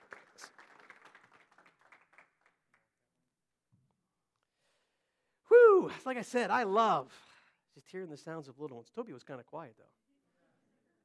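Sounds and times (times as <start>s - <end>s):
audience clapping: 0.0s - 3.0s
speech: 5.8s - 10.0s.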